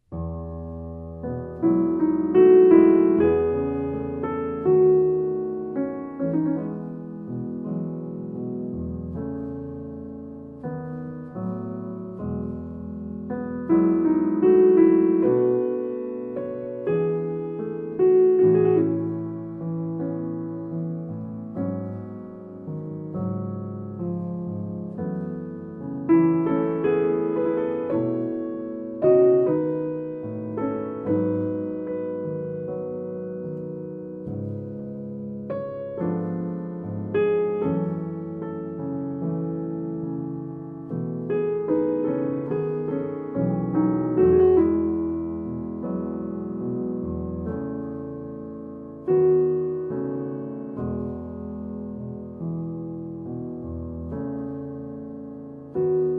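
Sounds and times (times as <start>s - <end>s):
solo piano: 0.0s - 56.1s.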